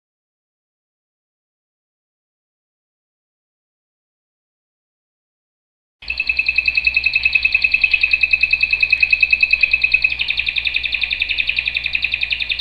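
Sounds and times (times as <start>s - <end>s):
canary singing rapid rolling trills: 6.0s - 12.5s.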